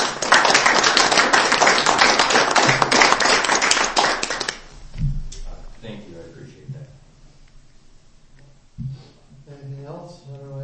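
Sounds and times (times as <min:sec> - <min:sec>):
round of applause: 0:00.0 - 0:04.7.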